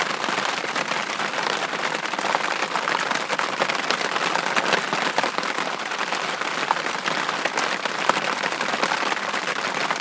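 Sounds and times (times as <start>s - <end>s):
rain outside a tent: 0.0s - 9.9s.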